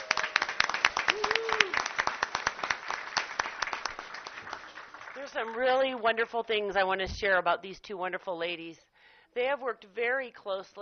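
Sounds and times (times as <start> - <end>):
audience applause: 0.0 - 5.8
speech: 5.3 - 10.7.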